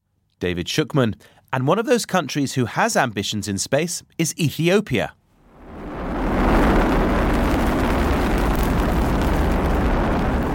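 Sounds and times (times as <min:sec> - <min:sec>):
speech: 0:00.4 - 0:05.2
Chinese rocket launching Ethiopia's first satellite, aired on state TV: 0:05.4 - 0:10.5.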